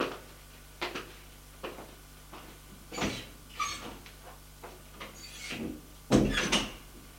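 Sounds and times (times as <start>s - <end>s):
faint steady hum: 0.0s - 7.1s
door closing as someone leaves room: 6.1s - 6.8s.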